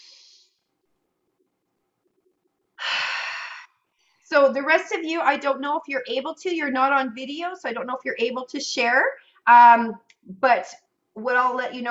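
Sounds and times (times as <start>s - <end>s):
deep breathing in during a guided gratitude breathing exercise: 2.8s - 4.3s
speech: 4.3s - 11.8s.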